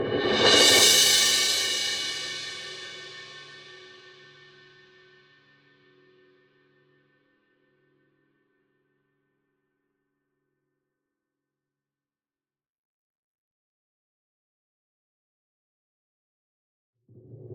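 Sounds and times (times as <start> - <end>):
cymbal crash swell played with soft beater: 0.1 - 3.7.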